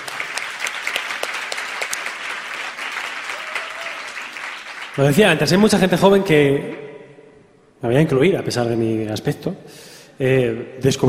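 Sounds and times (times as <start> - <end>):
audience applause at a music tribute event: 0.0 - 5.2
speech: 5.0 - 6.8, 7.8 - 11.0.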